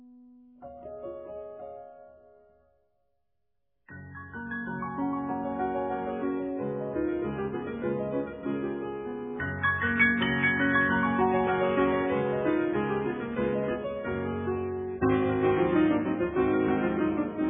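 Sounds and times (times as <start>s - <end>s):
piano recital polka in F: 3.9s - 17.4s.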